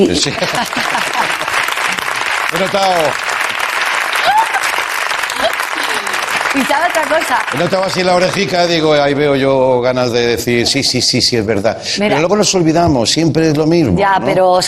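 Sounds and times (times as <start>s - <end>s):
speech: 0.0s - 1.4s, 2.5s - 3.3s, 6.6s - 14.6s
laughter: 0.0s - 3.0s, 4.2s - 6.8s
audience applause: 0.0s - 9.3s.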